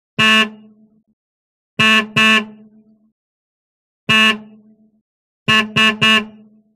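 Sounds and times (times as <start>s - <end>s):
1929 Chevrolet horn: 0.2s - 0.8s, 1.8s - 2.9s, 4.1s - 4.8s, 5.4s - 6.7s.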